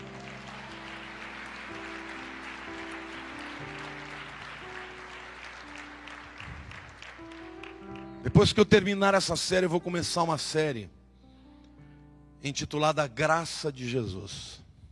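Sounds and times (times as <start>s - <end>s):
audience applause: 0.0s - 8.2s
speech: 8.2s - 11.0s, 12.4s - 14.6s.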